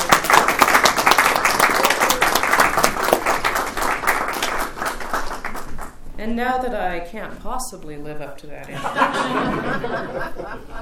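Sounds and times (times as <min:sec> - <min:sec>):
audience applause welcoming a speaker to an evening talk: 0:00.0 - 0:06.0
speech: 0:06.2 - 0:10.7
laughter: 0:08.7 - 0:10.7.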